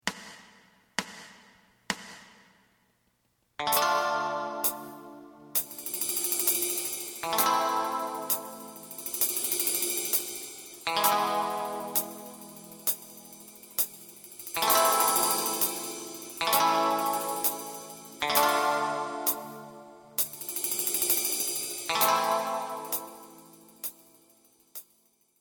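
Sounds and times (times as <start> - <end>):
lead melody: 3.6 - 24.2.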